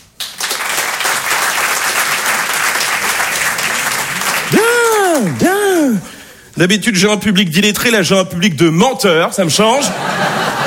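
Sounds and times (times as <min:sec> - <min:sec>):
audience applause: 0:00.2 - 0:06.1
speech: 0:05.2 - 0:10.4
laughter: 0:09.8 - 0:10.6.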